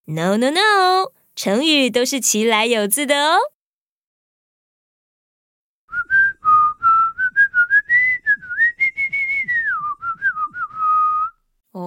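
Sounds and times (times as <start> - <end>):
speech: 0.1 - 3.6
whistled tune from old animated cartoon: 5.9 - 11.4.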